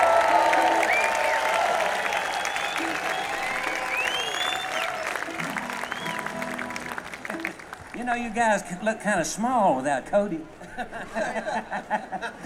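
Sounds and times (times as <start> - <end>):
audience whistles and cheers: 0.0 - 7.8
audience applause: 0.0 - 9.0
speech: 8.1 - 12.4
laughter: 10.5 - 12.4.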